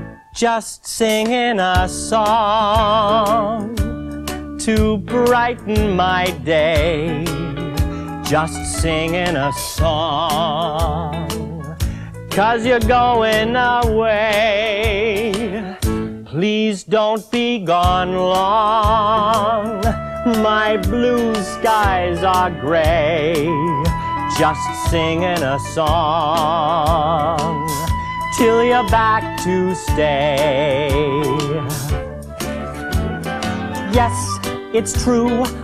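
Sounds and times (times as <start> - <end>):
person singing a song: 0.2 - 32.1, 33.3 - 35.6.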